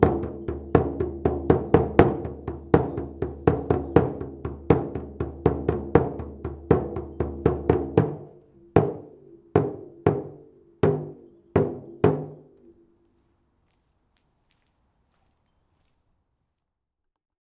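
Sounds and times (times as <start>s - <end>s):
drum circle: 0.0s - 12.7s.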